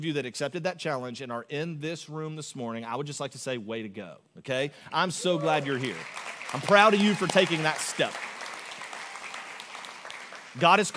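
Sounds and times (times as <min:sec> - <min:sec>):
speech: 0:00.0 - 0:08.3, 0:10.6 - 0:10.9
audience applause: 0:05.2 - 0:10.9.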